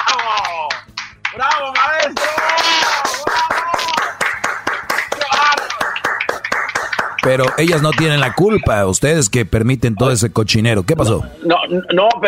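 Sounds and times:
audience clapping: 0.0s - 9.3s
speech: 7.2s - 12.2s.

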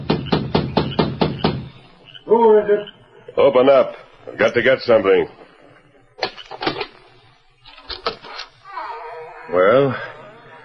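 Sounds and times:
knocking on a wooden door: 0.0s - 1.7s
speech: 2.3s - 5.4s, 9.5s - 10.1s.

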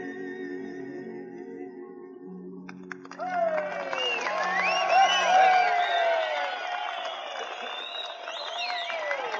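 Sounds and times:
audience applause and cheering: 2.8s - 9.3s.

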